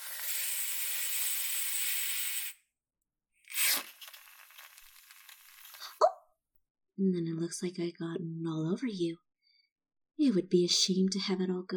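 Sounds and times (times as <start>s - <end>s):
whipped cream can spraying: 0.0s - 2.6s, 3.5s - 6.0s
speech: 7.0s - 9.3s, 10.2s - 11.7s.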